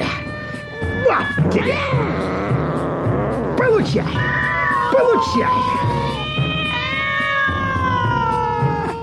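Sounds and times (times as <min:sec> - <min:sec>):
cats yowling as they are chased: 0:00.0 - 0:03.2, 0:04.1 - 0:09.0
speech: 0:01.1 - 0:02.3, 0:03.8 - 0:06.3.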